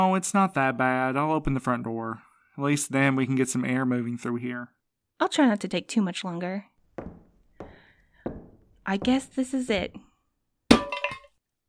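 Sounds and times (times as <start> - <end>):
speech: 0.0 - 7.2, 8.9 - 10.1
glass shards clinking: 10.7 - 11.3
glass jar breaking: 10.7 - 11.4.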